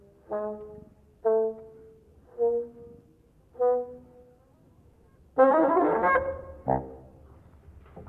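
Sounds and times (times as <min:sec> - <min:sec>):
bassoon solo: 0:00.2 - 0:04.4, 0:05.4 - 0:07.2.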